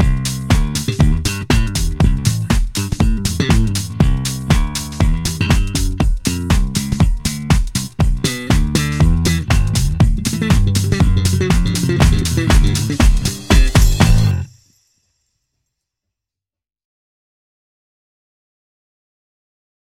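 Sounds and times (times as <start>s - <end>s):
funk music: 0.0s - 14.5s.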